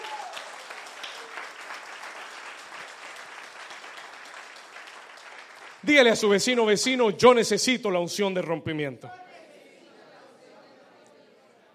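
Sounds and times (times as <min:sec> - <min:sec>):
audience applause: 0:00.0 - 0:06.6
speech: 0:05.8 - 0:09.2.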